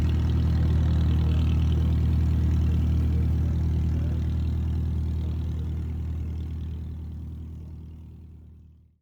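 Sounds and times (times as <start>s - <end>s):
de Havilland DH82A Tiger Moth aircraft taxiing: 0.0s - 7.1s.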